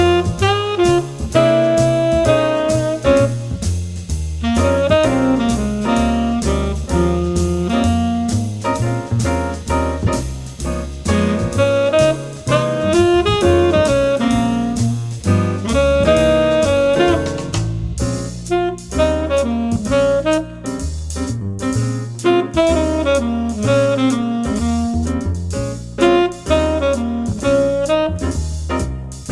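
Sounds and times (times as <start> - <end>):
swing trumpet: 0.0 - 29.3.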